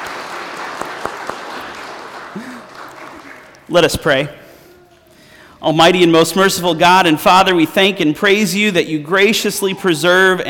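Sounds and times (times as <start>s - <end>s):
round of applause: 0.0s - 3.7s
speech: 3.7s - 4.4s, 5.6s - 10.4s.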